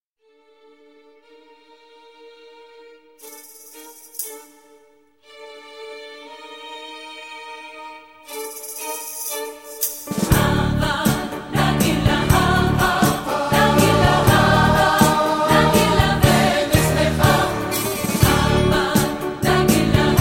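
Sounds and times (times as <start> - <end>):
studio choir vocals: 10.1 - 20.1.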